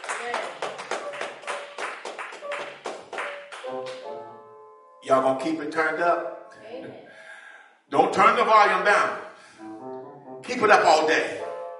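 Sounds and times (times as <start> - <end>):
audience hand clapping: 0.0 - 4.2
speech: 5.1 - 7.1, 7.9 - 9.2, 10.5 - 11.4.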